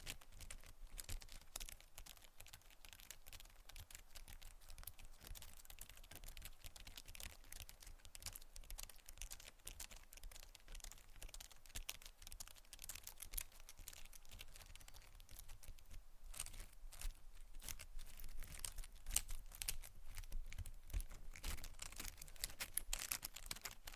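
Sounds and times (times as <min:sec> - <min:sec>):
quick tapping and scratching: 0:00.0 - 0:23.9.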